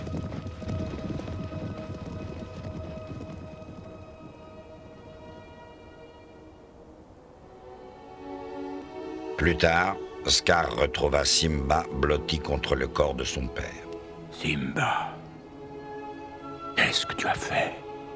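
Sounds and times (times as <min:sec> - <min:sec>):
thundering hooves of a stampeding herd: 0:00.0 - 0:07.4
speech: 0:09.4 - 0:13.8, 0:14.4 - 0:15.1, 0:16.9 - 0:17.8.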